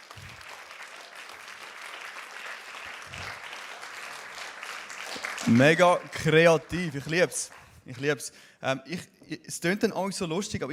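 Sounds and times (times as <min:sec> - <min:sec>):
audience applause: 0:00.0 - 0:07.8
speech: 0:05.4 - 0:10.7.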